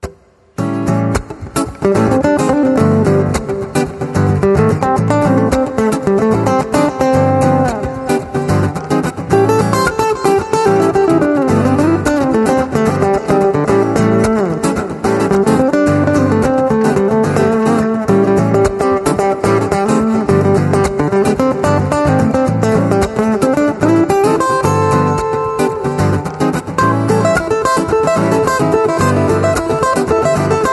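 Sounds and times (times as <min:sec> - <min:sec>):
instrumental acoustic guitar: 0:00.0 - 0:30.7.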